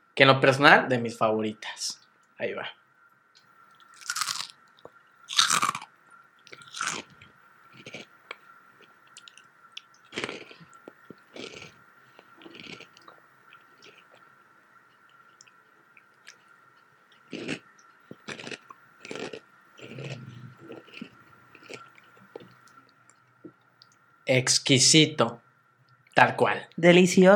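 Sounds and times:
faint steady hum: 0.0 - 27.3
speech: 0.2 - 2.8, 24.3 - 25.4, 26.2 - 27.3
crunching and chewing Flaming Hot Cheetos Puffs: 3.7 - 23.3.

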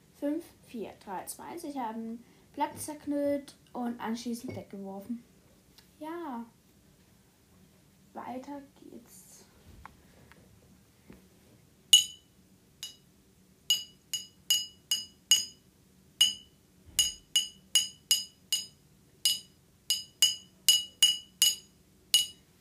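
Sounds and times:
speech: 0.2 - 5.3, 6.0 - 6.6, 8.2 - 9.2
pen tapping a glass bottle: 13.7 - 15.6, 16.2 - 22.4.

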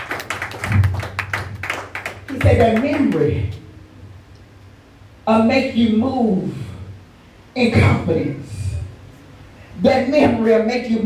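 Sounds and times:
audience clapping: 0.0 - 3.4
speech: 2.4 - 3.6, 5.3 - 6.6, 7.6 - 8.6, 9.8 - 11.0.

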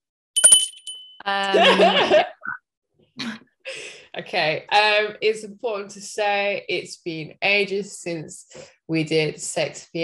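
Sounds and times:
small bell ringing: 0.4 - 1.8
speech: 1.2 - 2.4, 3.2 - 10.0
laughter: 1.5 - 2.4.

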